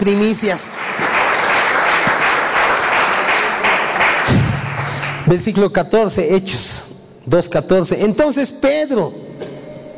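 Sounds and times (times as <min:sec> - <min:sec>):
speech: 0:00.0 - 0:01.2, 0:05.3 - 0:09.2
audience applause: 0:00.7 - 0:05.3.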